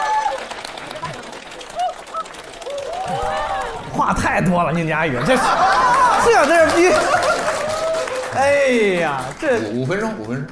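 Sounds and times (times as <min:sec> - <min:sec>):
high whistles and cheers: 0:00.0 - 0:03.9, 0:05.5 - 0:09.3
crowd applauding: 0:00.0 - 0:10.5
laughter: 0:00.8 - 0:09.6
speech: 0:04.0 - 0:07.2, 0:08.4 - 0:10.5.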